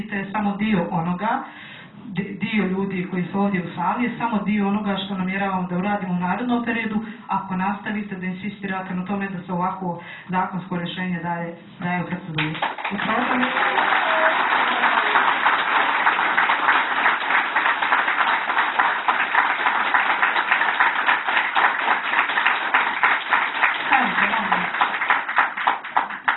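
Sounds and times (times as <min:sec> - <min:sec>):
speech: 0:00.0 - 0:14.2
applause in a parliament hall: 0:12.4 - 0:26.3.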